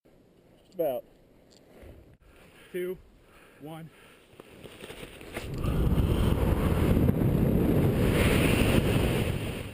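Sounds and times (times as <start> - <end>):
speech: 0.8 - 1.1, 2.7 - 4.1
wind rushing past a GoPro during a windsuit cliff jump in the Dolomites, Italy: 5.3 - 9.7.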